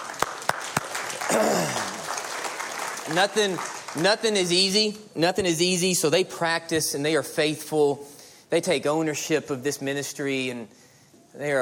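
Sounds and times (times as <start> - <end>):
audience applauding: 0.0 - 4.3
speech: 1.3 - 1.9, 3.1 - 10.8, 11.4 - 11.6.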